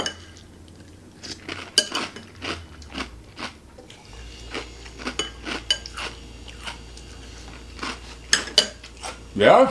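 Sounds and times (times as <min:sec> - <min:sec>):
low hum: 0:00.0 - 0:09.6
crunchy cereal chewing: 0:00.6 - 0:09.3
spoon clinking against bowl: 0:01.8 - 0:02.3, 0:05.1 - 0:06.0.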